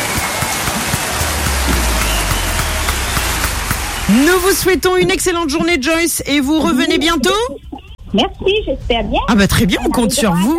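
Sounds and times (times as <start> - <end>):
group applause: 0.0 - 4.9
speech: 4.1 - 10.5.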